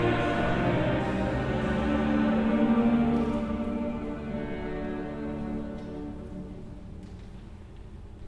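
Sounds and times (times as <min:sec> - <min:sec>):
recitative singing: 0:00.0 - 0:06.5.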